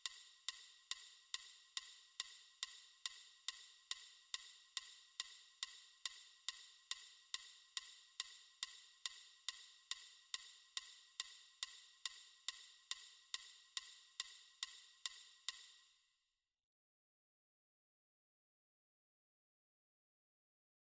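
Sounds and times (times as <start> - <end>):
metronome ticking at 140 beats per minute: 0.0 - 15.8.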